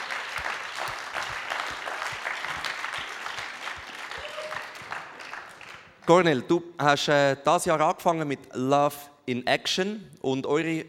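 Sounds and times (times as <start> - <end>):
audience applause: 0.0 - 6.2
speech: 6.1 - 10.8.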